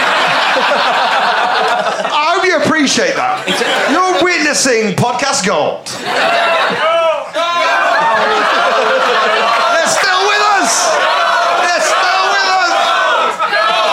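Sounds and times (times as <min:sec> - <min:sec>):
laughter: 0:00.0 - 0:04.6, 0:05.8 - 0:13.9
live crowd cheering enthusiastically: 0:00.0 - 0:04.6, 0:05.9 - 0:13.9
speech: 0:04.6 - 0:06.9.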